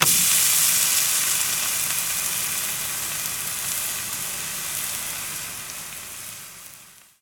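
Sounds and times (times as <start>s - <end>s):
steak sizzling: 0.0s - 7.0s.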